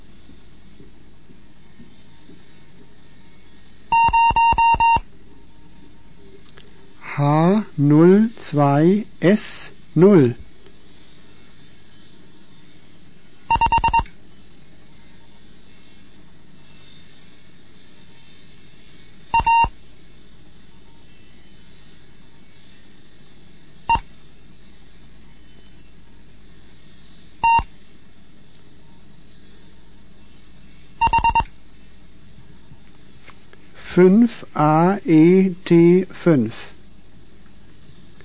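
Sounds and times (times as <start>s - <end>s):
Morse code tones: 3.9s - 5.0s, 13.5s - 14.1s, 19.4s - 19.7s, 27.4s - 27.7s, 31.0s - 31.5s
speech: 7.2s - 10.4s, 34.0s - 36.7s.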